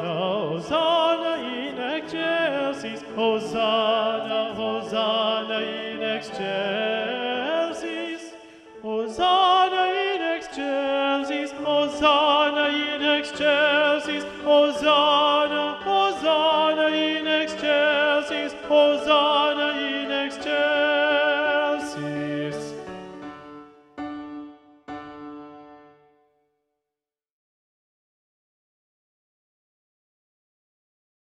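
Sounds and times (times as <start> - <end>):
tenor singing a Sanctus: 0.0 - 23.8.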